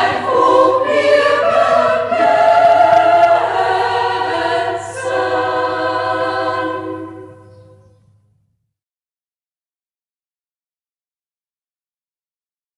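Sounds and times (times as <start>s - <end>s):
chamber choir singing: 0.0s - 8.0s.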